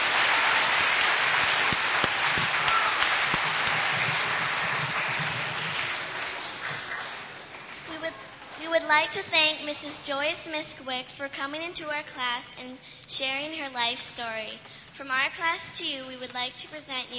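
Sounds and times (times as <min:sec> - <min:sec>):
audience applause: 0:00.0 - 0:08.6
speech: 0:09.0 - 0:17.1.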